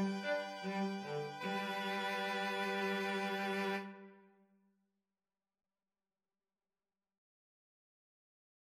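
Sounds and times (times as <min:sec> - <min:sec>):
string trio playing: 0:00.0 - 0:04.1.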